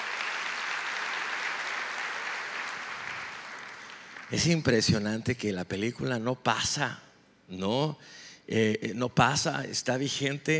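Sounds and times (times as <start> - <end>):
audience applause: 0.0 - 4.6
speech: 4.3 - 10.5.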